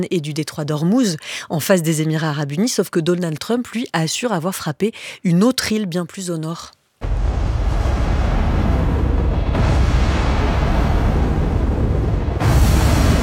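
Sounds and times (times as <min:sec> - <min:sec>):
speech: 0:00.0 - 0:07.2
explosions of an oil tank and a tanker in an AI-generated video: 0:07.0 - 0:13.2.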